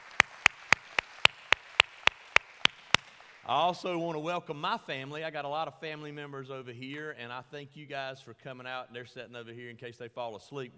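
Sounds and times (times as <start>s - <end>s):
audience clapping hands in praise: 0.0s - 3.8s
speech: 3.5s - 10.7s.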